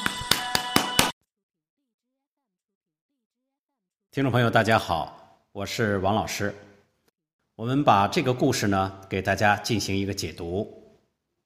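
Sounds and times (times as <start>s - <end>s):
applause: 0.0s - 1.1s
speech: 4.2s - 6.7s, 7.6s - 10.8s.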